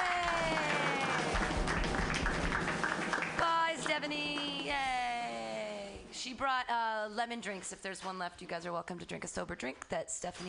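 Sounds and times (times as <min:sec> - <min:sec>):
group clapping wildly: 0:00.0 - 0:05.1
speech: 0:06.2 - 0:10.4.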